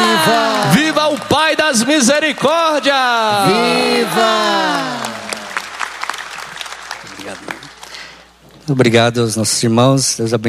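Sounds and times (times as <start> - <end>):
congregation at a Catholic Mass clapping: 0.0 - 8.3
speech: 1.2 - 5.0, 8.7 - 10.4.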